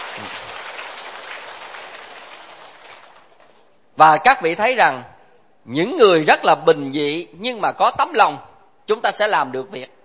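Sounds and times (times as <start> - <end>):
applause: 0.0 - 3.6
speech: 4.0 - 10.0.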